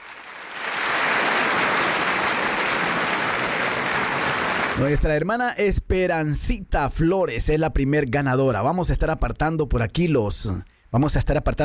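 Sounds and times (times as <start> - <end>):
audience applause: 0.0 - 5.0
speech: 4.8 - 11.6.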